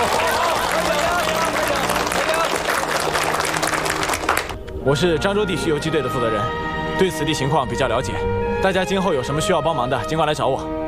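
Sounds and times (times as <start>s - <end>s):
crowd applauding welcoming new members: 0.0s - 4.6s
speech: 4.8s - 10.8s.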